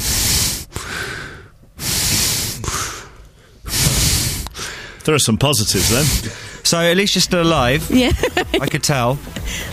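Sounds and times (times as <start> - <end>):
loud heavy rasping breathing: 0.0 - 6.7, 9.3 - 9.7
speech: 5.0 - 9.7
laughter: 7.7 - 9.7.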